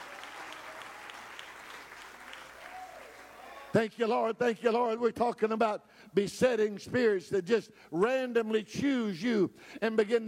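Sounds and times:
audience clapping hands: 0.0s - 3.8s
speech: 3.7s - 10.2s.

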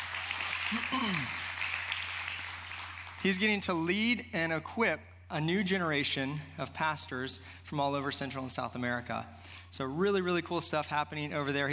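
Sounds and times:
audience clapping: 0.0s - 3.7s
speech: 0.7s - 1.4s, 3.2s - 11.7s.

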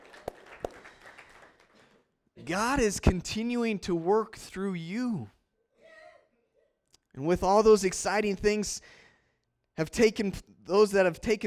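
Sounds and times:
audience applause: 0.0s - 2.0s
speech: 2.4s - 5.4s, 7.2s - 9.0s, 9.8s - 11.4s.

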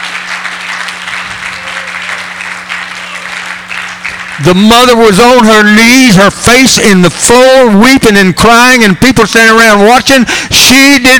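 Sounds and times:
audience clapping: 0.0s - 5.0s
speech: 4.4s - 11.1s.

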